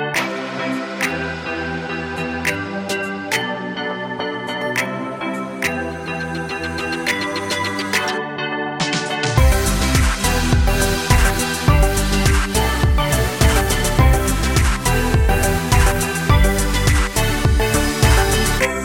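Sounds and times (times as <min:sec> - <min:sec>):
future house music: 0:00.2 - 0:18.8.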